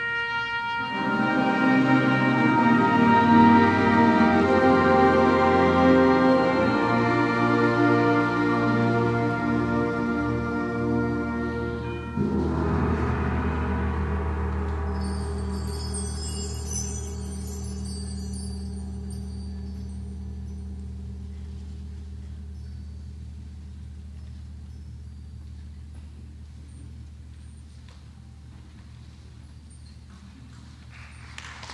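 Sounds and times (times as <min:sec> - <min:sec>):
bugle call: 0:00.0 - 0:15.5.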